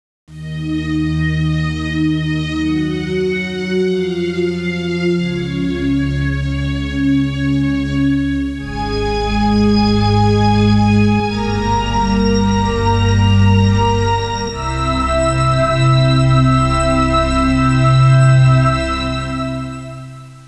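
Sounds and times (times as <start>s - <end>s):
new age music: 0.3s - 20.4s.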